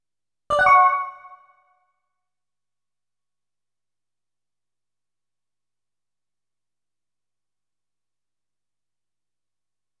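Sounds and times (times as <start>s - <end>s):
game menu opening: 0.5s - 1.4s.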